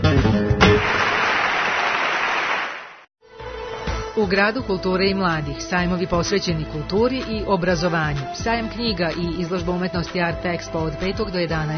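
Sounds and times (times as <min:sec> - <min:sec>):
applause in a radio ad for a Guitar Art Festival flamenco concert: 0:00.6 - 0:03.1
speech: 0:04.2 - 0:11.7.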